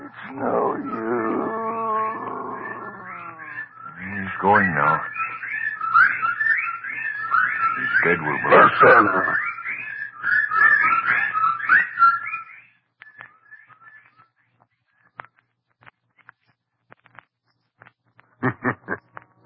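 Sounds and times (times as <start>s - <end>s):
birds calling: 0.0s - 14.2s
speech: 0.3s - 1.0s, 4.4s - 5.1s, 8.0s - 9.4s
laughter: 18.4s - 19.1s.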